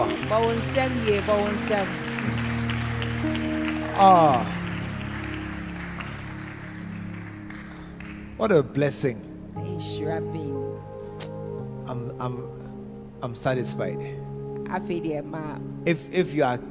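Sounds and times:
audience clapping hands: 0.0 - 8.7
speech: 0.3 - 2.1, 3.2 - 4.6, 8.4 - 12.6, 13.2 - 16.6.

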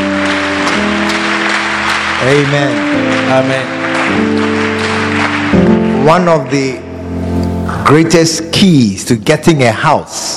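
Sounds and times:
audience clapping: 0.0 - 6.8
speech: 2.2 - 4.6, 6.0 - 10.3.

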